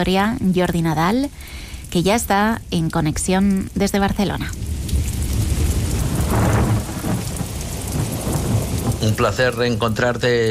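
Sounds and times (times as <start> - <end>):
speech: 0.0 - 4.7, 9.0 - 10.4
steady rain in a thunderstorm: 0.0 - 10.4
deep thunder rumbling: 2.1 - 10.2.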